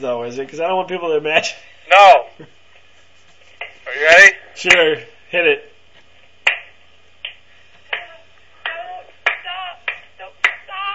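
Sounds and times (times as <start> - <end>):
speech: 0.0 - 2.6, 4.0 - 5.7
hand slapping a leg: 6.4 - 10.6.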